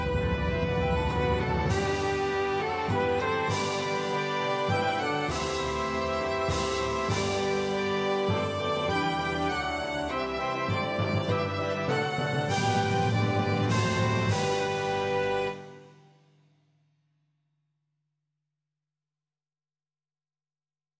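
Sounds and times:
violin melody: 0.0 - 16.0.

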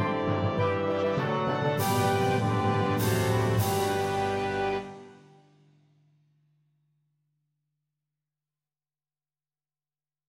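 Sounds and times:
bassoon melody: 0.0 - 5.4.

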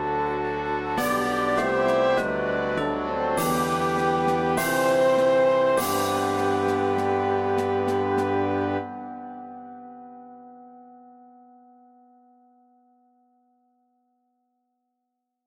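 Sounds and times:
flute melody: 0.0 - 9.6.

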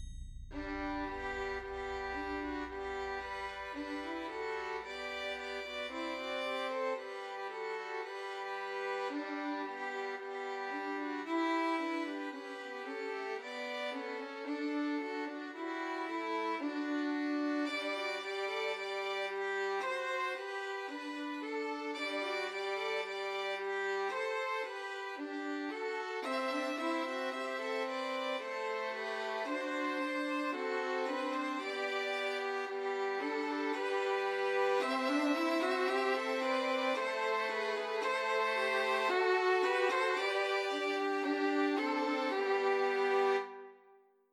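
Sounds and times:
three violins playing trios: 0.5 - 43.7.

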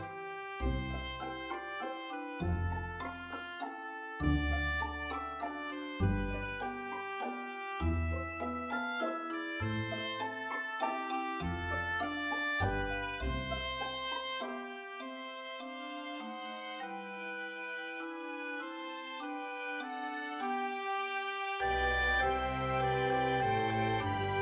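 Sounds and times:
oboe melody: 0.1 - 24.4.

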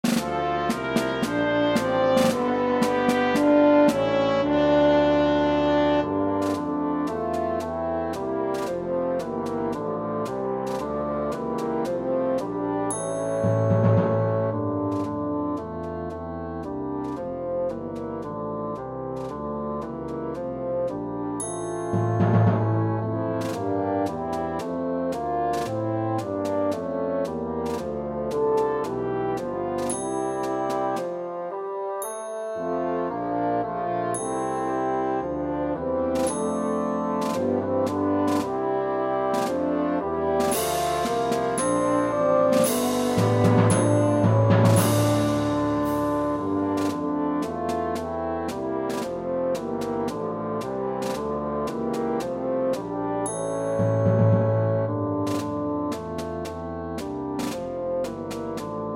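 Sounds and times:
tenoroon melody: 0.0 - 58.9.

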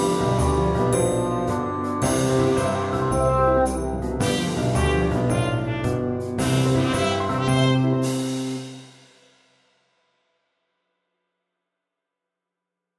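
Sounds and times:
tenoroon melody: 0.0 - 8.3.

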